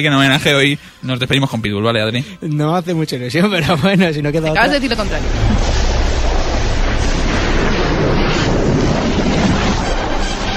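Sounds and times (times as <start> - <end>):
speech: 0.0 - 5.9
storm wind rushing: 4.3 - 10.5.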